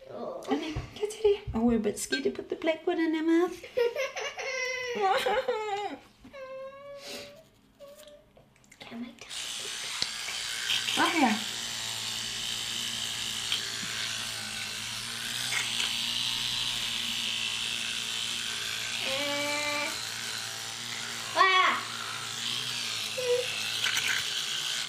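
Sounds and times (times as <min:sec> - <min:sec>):
speech: 0:00.4 - 0:04.0, 0:05.0 - 0:06.0
child whimpering: 0:04.1 - 0:05.2, 0:05.8 - 0:08.3, 0:23.2 - 0:23.5
electric toothbrush buzzing: 0:09.2 - 0:24.8.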